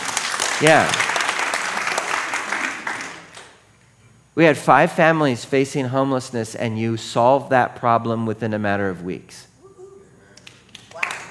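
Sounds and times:
audience clapping: 0.0 - 3.6, 10.4 - 11.2
speech: 0.6 - 1.1, 4.4 - 9.5.

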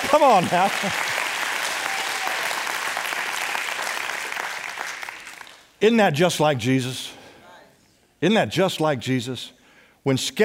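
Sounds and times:
audience applause: 0.0 - 5.6
speech: 0.1 - 1.2, 5.8 - 7.1, 8.2 - 10.4.

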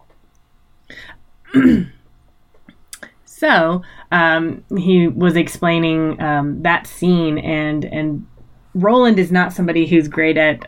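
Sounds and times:
speech: 0.9 - 2.0, 3.4 - 10.6
person sneezing: 1.5 - 2.0.

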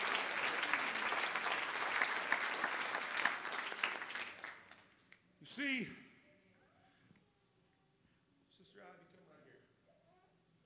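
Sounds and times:
audience clapping hands: 0.0 - 5.1
speech: 5.6 - 6.0.

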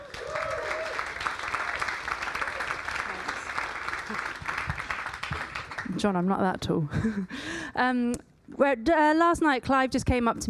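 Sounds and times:
crowd applause: 0.0 - 6.1
speech: 6.0 - 10.4.

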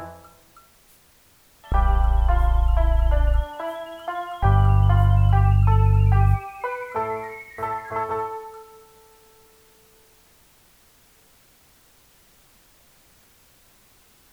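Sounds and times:
electronic music: 1.7 - 8.9.

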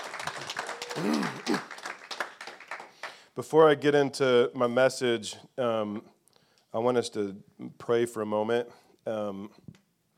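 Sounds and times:
round of applause: 0.0 - 3.3
speech: 1.0 - 1.8, 3.4 - 9.7.

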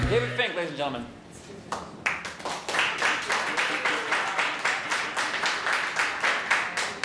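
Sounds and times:
speech: 0.1 - 1.2
applause from a small audience: 1.7 - 7.0.

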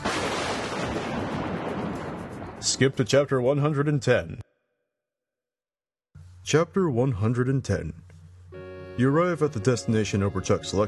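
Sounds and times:
large thunderclap: 0.0 - 3.0
speech: 2.6 - 4.5, 6.5 - 8.1, 9.0 - 10.8.

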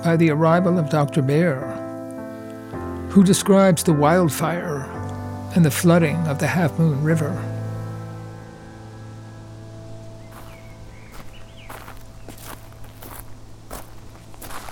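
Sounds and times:
speech: 0.0 - 1.8, 3.1 - 7.5
footsteps walking across a driveway: 10.2 - 14.6.

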